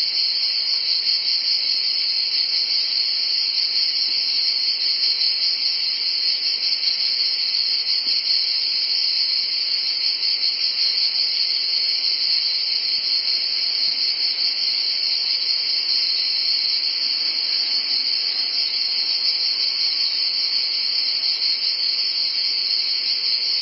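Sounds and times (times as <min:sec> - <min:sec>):
cicadas producing a high hissing drone: 0:00.0 - 0:23.6.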